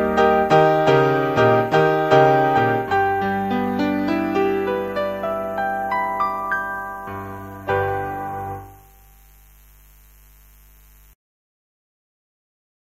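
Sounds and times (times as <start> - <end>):
popular piano piece: 0.0 - 8.9.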